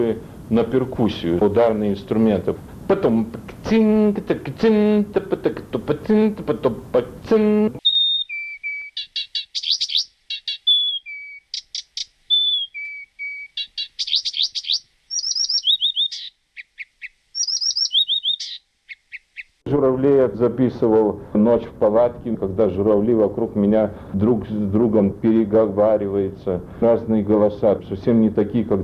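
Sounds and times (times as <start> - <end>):
speech: 0.0 - 7.8, 20.2 - 28.8
reed warbler trilling song: 7.3 - 19.6.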